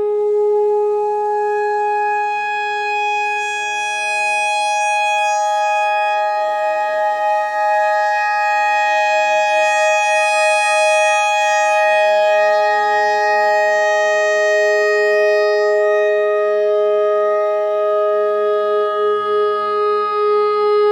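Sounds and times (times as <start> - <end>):
clarinet notes in E pentatonic: 0.2 - 20.8.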